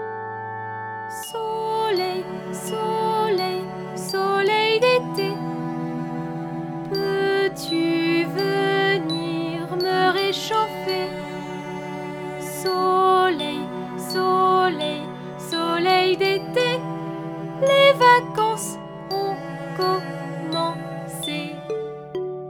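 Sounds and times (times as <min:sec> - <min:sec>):
chanting: 0:01.2 - 0:22.1.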